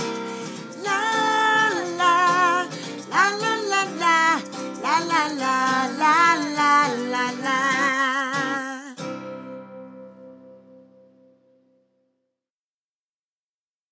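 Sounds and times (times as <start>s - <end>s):
greeting song sung in Spanish: 0.0s - 9.1s.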